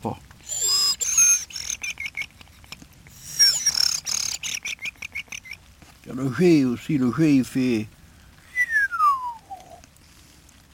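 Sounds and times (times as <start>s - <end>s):
speech: 0.0s - 0.6s, 6.1s - 8.0s
human whistle imitating a thrush call: 0.4s - 5.6s, 8.5s - 9.8s.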